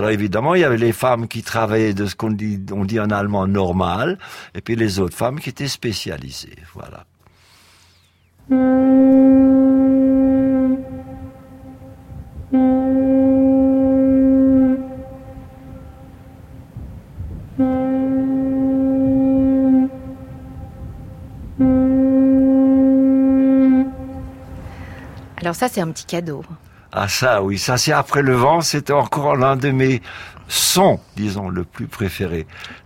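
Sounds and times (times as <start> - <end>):
speech: 0.0 - 7.1, 8.5 - 9.5, 25.5 - 32.8
foghorns: 8.4 - 25.2.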